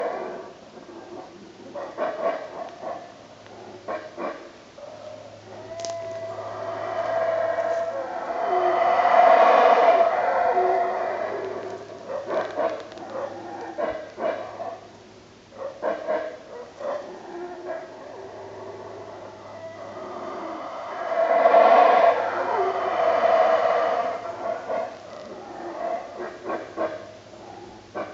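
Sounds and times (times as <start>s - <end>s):
howler monkey calling: 5.2s - 14.9s, 15.6s - 28.1s.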